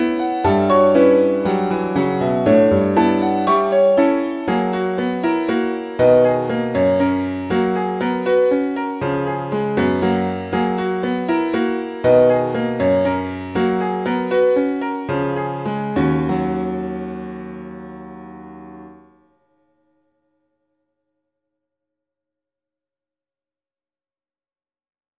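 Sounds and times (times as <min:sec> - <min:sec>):
etude on a digital piano: 0:00.0 - 0:19.2.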